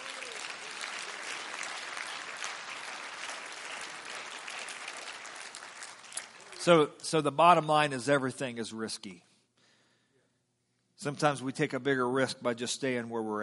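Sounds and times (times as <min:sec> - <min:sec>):
audience clapping hands: 0:00.0 - 0:07.0
speech: 0:06.6 - 0:09.3, 0:11.0 - 0:13.4.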